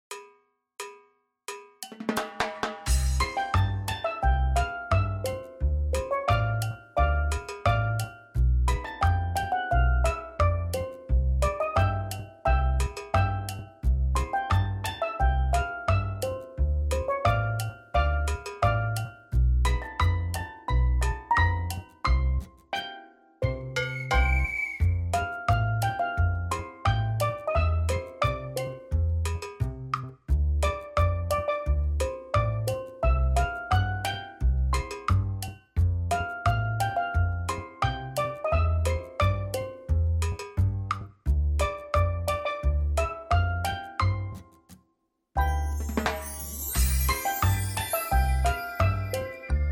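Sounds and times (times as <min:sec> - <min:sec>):
ragtime music: 0:02.0 - 0:44.6, 0:45.4 - 0:49.7.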